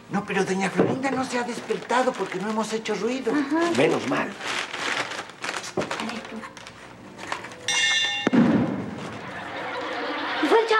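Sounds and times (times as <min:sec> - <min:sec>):
speech: 0:00.1 - 0:04.7
ringing tone: 0:07.7 - 0:08.4
hammer blow thud: 0:07.9 - 0:08.9
laughter: 0:09.0 - 0:10.7.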